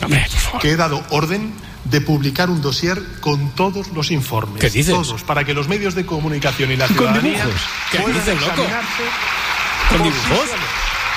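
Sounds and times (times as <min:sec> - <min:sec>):
speech: 0:00.1 - 0:10.8
applause in parliament: 0:06.6 - 0:11.1.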